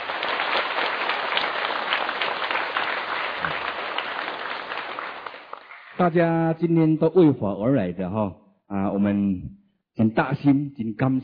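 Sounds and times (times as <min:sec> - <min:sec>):
room full of people clapping: 0:00.0 - 0:06.1
speech: 0:06.0 - 0:11.2.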